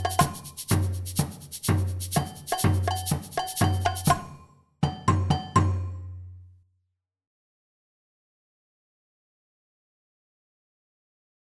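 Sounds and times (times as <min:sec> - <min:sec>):
batucada percussion orchestra: 0:00.0 - 0:06.3.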